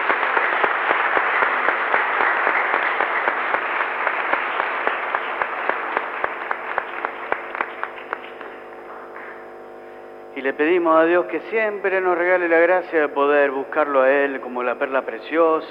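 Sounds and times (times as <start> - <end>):
audience applause: 0.0 - 8.8
speech: 10.4 - 15.6.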